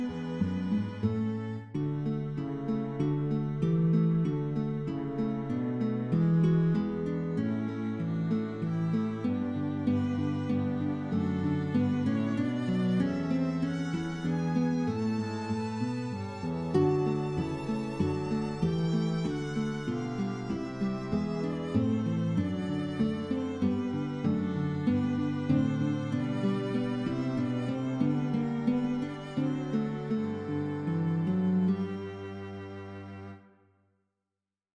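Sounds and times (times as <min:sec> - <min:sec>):
string quartet playing bagatelles: 0:00.0 - 0:33.4.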